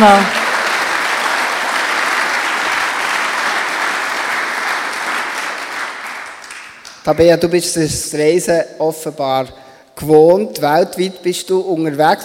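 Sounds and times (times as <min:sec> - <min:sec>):
speech: 0:00.0 - 0:00.4, 0:07.1 - 0:12.2
audience applause: 0:00.0 - 0:07.0.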